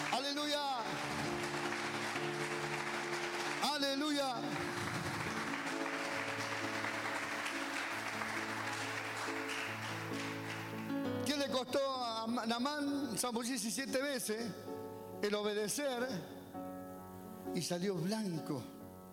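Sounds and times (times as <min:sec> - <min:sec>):
audience applause: 0:00.0 - 0:11.0
speech: 0:11.6 - 0:16.4, 0:17.6 - 0:18.8.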